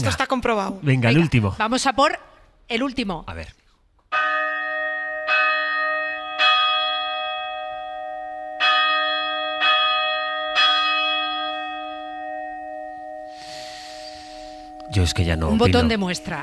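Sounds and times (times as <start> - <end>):
speech: 0.0 - 4.3, 14.9 - 16.4
church bell ringing storm-dispersing toll: 4.1 - 16.4.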